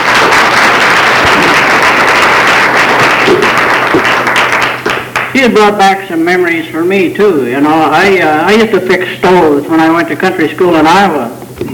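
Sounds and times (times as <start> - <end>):
audience applause: 0.0 - 5.3
speech: 5.4 - 11.7.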